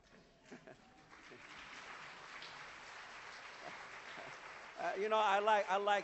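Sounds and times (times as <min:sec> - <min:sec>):
hand clapping: 0:01.0 - 0:05.0.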